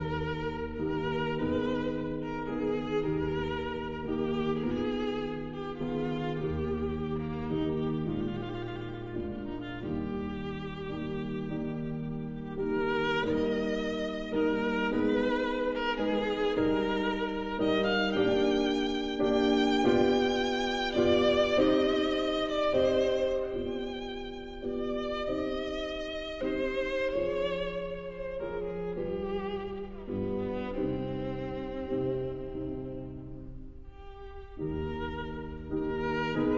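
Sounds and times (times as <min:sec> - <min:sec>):
violin and piano: 0:00.0 - 0:36.5.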